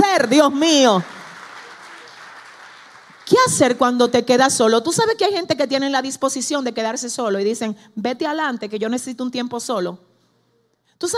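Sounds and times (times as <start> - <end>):
speech: 0.2 - 1.2, 3.4 - 10.1, 11.0 - 11.1
audience applause: 1.0 - 3.3.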